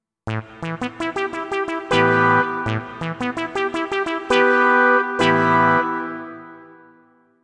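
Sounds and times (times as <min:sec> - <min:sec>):
waspy synth: 0:00.3 - 0:06.9.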